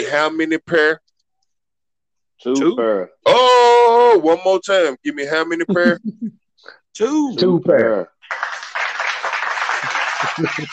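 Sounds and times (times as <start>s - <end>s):
speech: 0.0s - 1.1s, 2.4s - 8.5s, 10.3s - 10.7s
group hand clapping: 8.2s - 10.7s
laughter: 9.6s - 10.7s.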